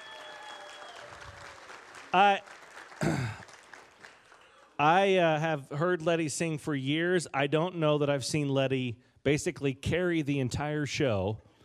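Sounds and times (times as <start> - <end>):
audience applause: 0.0 - 4.8
speech: 2.1 - 3.3, 4.8 - 11.5.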